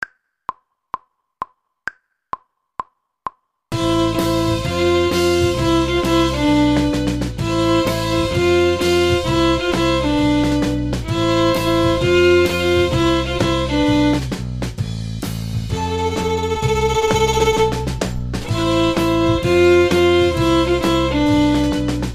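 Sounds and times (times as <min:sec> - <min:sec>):
viola: 0:03.8 - 0:14.3, 0:15.7 - 0:22.1.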